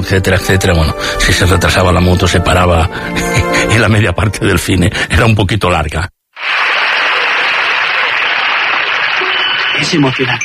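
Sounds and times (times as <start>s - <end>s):
speech: 0.1s - 6.6s, 9.8s - 10.4s
applause from a large crowd: 6.4s - 10.4s.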